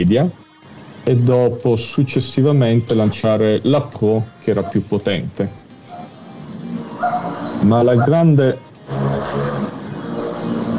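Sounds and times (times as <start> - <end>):
speech: 0.0 - 0.4, 1.0 - 5.6, 7.6 - 9.0
moped passing by: 5.8 - 8.2, 8.8 - 10.7.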